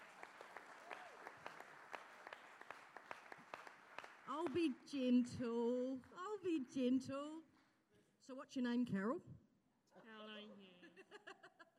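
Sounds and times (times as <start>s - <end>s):
audience applause: 0.0s - 4.9s
speech: 4.3s - 7.4s, 8.3s - 9.4s.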